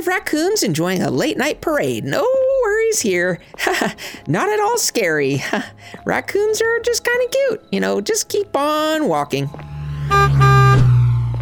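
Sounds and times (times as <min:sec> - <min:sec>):
speech: 0:00.0 - 0:10.5
car horn: 0:10.0 - 0:11.1.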